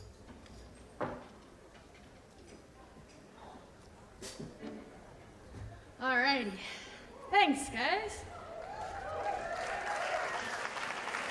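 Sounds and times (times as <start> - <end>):
speech: 6.0 - 6.8, 7.4 - 8.3
people clapping: 8.4 - 11.3.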